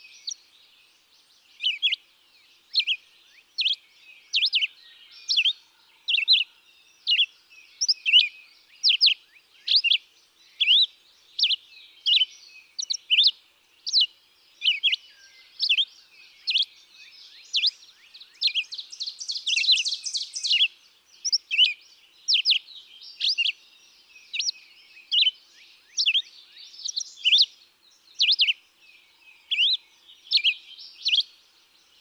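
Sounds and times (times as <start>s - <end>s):
Red-eyed Vireo singing: 2.7s - 31.9s.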